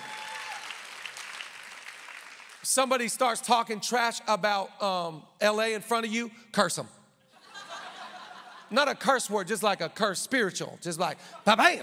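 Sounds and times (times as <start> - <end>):
audience clapping: 0.0 - 2.7
speech: 2.6 - 7.0, 8.7 - 11.8
laughter: 7.3 - 8.8.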